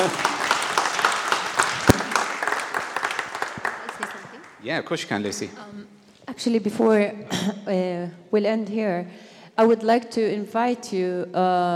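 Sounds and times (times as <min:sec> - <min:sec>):
speech: 0:00.0 - 0:00.2, 0:04.6 - 0:11.7
audience applause: 0:00.0 - 0:04.7.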